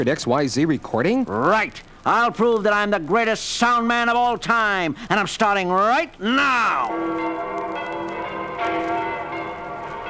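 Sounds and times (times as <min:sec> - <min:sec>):
speech: 0:00.0 - 0:07.6
bells tolling: 0:06.8 - 0:10.0.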